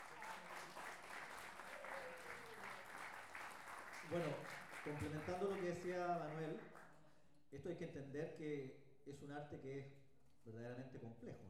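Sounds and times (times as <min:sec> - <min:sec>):
audience applause: 0:00.0 - 0:05.9
speech: 0:04.0 - 0:06.8, 0:07.5 - 0:11.4.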